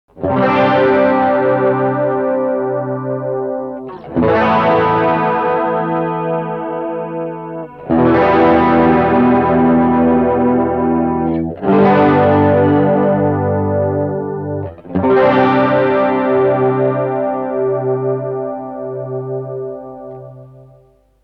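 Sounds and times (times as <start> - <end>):
guitar with light overdrive and chorus: 0.1 - 21.0.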